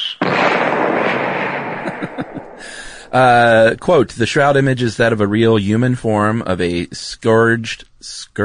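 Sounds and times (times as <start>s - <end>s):
bombshell explosion sound effect: 0.2s - 3.4s
speech: 3.1s - 8.4s.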